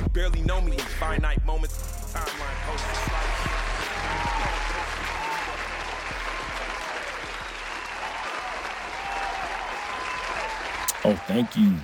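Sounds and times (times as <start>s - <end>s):
speech: 0.2s - 5.3s, 11.1s - 11.8s
audience applause: 2.4s - 11.8s.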